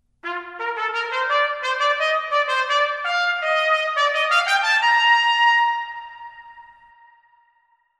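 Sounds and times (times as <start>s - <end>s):
fanfare: 0.2s - 6.6s.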